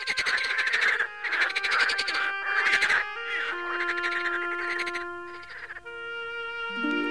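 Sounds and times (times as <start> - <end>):
frogs croaking: 0.0 - 7.0.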